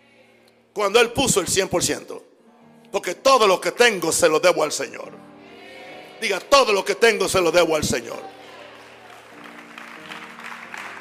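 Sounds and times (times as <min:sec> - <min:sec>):
speech: 0:00.8 - 0:02.3, 0:02.9 - 0:05.3, 0:06.2 - 0:08.4
audience clapping: 0:08.0 - 0:10.9.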